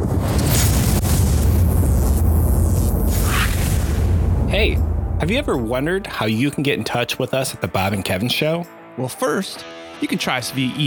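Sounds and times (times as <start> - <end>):
thunder rumble: 0.0 - 6.2
speech: 4.6 - 10.8.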